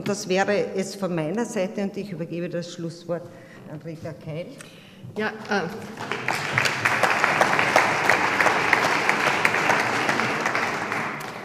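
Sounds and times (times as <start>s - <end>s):
speech: 0.0s - 6.5s
audience applause: 5.8s - 11.4s.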